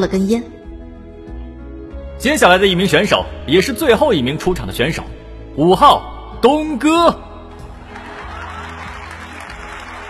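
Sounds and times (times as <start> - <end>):
speech: 0.0 - 0.6, 2.2 - 7.2
audience applause at a crowded contest venue: 7.8 - 10.0
crowd cheering at a contest venue: 7.8 - 10.0.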